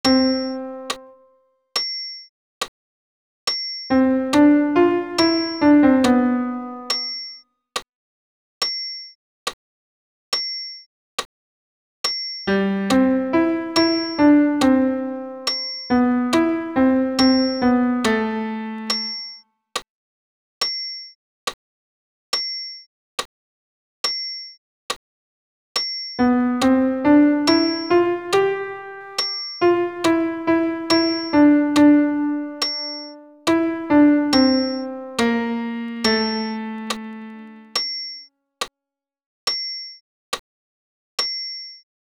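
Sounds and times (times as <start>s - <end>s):
solo piano for tenor: 0.0s - 1.2s, 3.9s - 6.9s, 12.5s - 19.2s, 26.2s - 37.8s.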